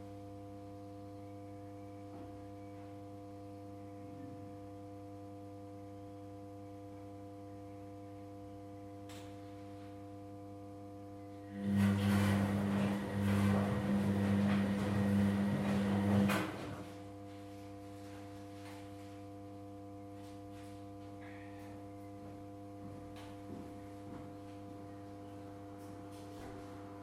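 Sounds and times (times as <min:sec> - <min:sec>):
washing machine: 0:11.4 - 0:18.9, 0:23.2 - 0:27.0.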